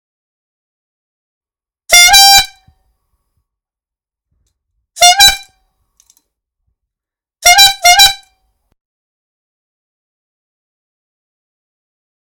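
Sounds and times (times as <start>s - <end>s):
bike horn: 1.9s - 2.7s, 5.0s - 5.6s, 7.4s - 8.4s.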